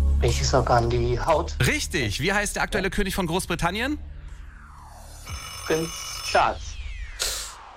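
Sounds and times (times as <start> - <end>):
speech: 0.2 - 4.1, 5.7 - 6.7
alarm clock ringing: 5.2 - 7.1.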